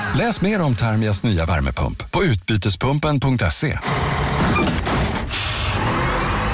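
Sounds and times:
speech: 0.2 - 4.8
bus engine drone as it pulls up: 3.9 - 6.5
bus air brakes hissing: 5.3 - 5.8.

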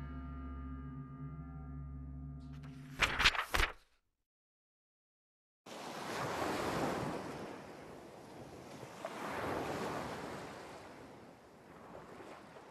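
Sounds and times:
low steady drone: 0.0 - 2.9
waves breaking on the shore: 5.7 - 12.6.

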